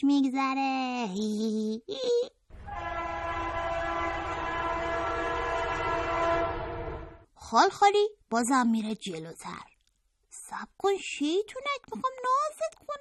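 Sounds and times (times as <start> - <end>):
speech: 0.0 - 3.2, 7.5 - 9.7, 10.5 - 13.0
train horn blasts: 2.5 - 7.3.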